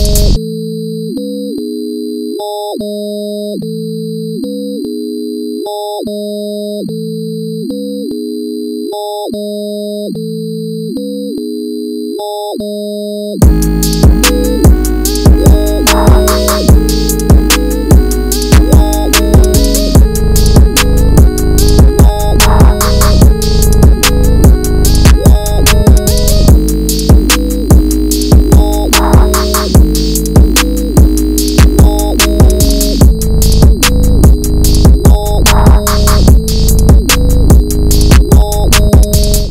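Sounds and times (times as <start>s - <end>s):
instrumental music: 0.0s - 0.4s, 13.4s - 39.4s.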